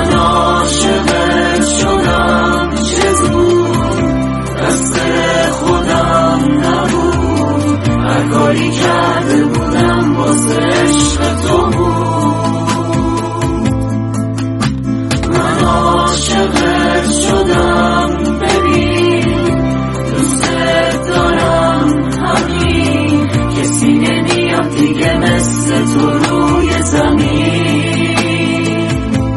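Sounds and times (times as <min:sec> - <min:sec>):
Iranian group performance with guitar: 0:00.0 - 0:29.3.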